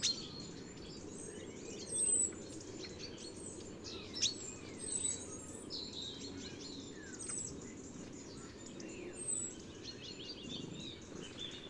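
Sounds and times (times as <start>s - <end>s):
European robin Erithacus rubecula singing: 0.0s - 11.6s.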